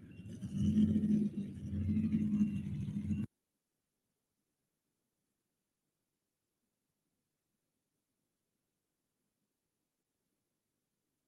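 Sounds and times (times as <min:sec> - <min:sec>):
modified four-wheel drive Chevrolet truck engine rumbling on a pulling track: 0:00.0 - 0:03.3.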